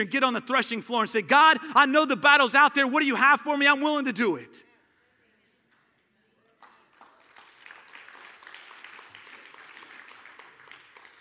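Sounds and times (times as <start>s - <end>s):
speech: 0.0s - 4.7s
audience clapping: 6.6s - 11.1s.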